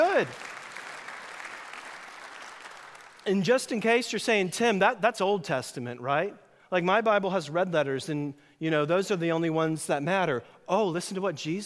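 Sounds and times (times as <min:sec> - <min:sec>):
audience clapping: 0:00.0 - 0:03.4
speech: 0:00.2 - 0:00.5, 0:03.2 - 0:11.6.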